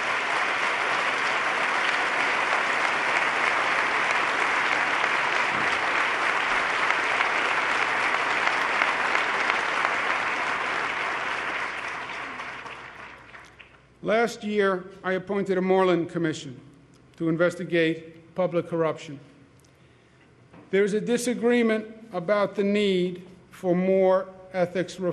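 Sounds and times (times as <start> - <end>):
audience applause: 0.0 - 13.7
speech: 14.1 - 19.3, 20.7 - 25.1.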